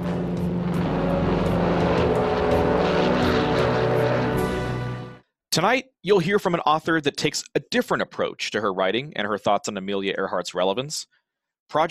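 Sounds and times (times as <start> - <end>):
Lockheed Electra propeller airplane taking off from a runway: 0.0 - 5.2
speech: 5.6 - 11.9.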